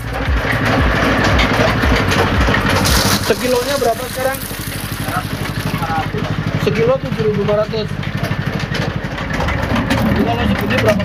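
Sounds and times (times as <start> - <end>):
pressing machine running: 0.0 - 11.0
speech: 3.3 - 4.6, 6.6 - 8.8, 10.2 - 11.0.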